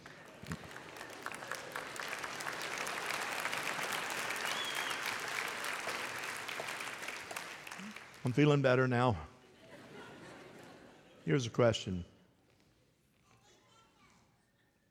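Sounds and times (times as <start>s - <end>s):
audience clapping: 0.0s - 8.9s
speech: 8.2s - 9.3s, 11.3s - 12.1s
laughter: 9.4s - 11.6s.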